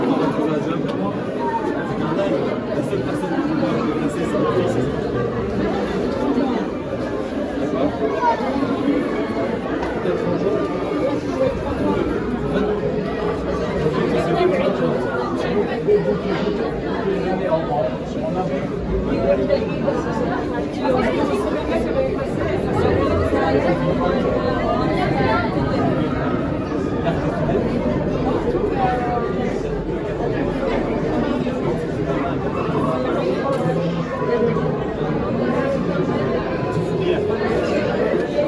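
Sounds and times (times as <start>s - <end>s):
people in a queue: 0.0s - 38.4s.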